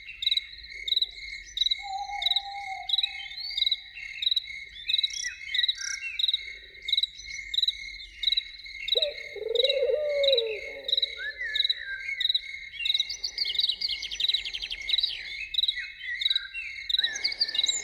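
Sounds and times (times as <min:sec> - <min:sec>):
crickets chirping: 0:00.3 - 0:17.8
loon wail and tremolo: 0:09.0 - 0:11.5.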